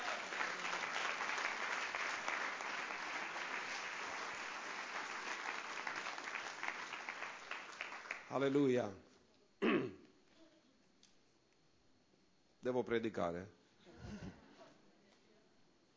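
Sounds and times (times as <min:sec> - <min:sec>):
audience applause: 0:00.0 - 0:08.6
speech: 0:08.3 - 0:09.1, 0:12.7 - 0:13.6.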